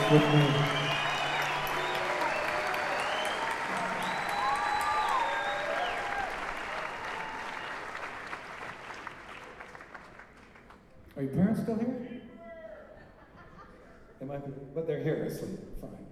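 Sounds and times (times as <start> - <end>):
whistles and whoops: 0.0 - 8.0
audience applause for a performer joining the show: 0.0 - 11.0
speech: 0.1 - 0.8, 14.4 - 16.0
laughter: 12.9 - 14.2.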